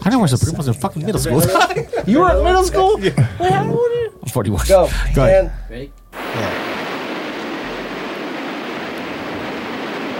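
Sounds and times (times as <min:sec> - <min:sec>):
speech: 0:00.1 - 0:06.5
laughter: 0:00.2 - 0:04.2
rain in a song intro: 0:06.1 - 0:10.1.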